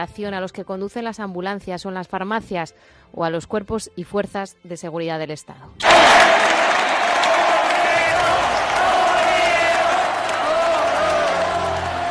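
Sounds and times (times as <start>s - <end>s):
speech: 0.0s - 6.6s
applause: 5.8s - 12.0s
cheering: 5.8s - 12.0s.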